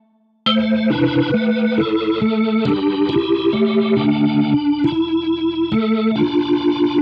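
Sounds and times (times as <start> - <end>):
drum and bass synth loop: 0.5 - 7.0.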